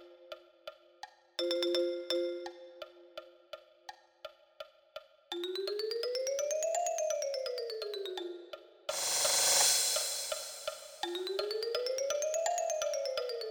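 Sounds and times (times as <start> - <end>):
marimba: 1.4 - 3.4, 5.4 - 13.4.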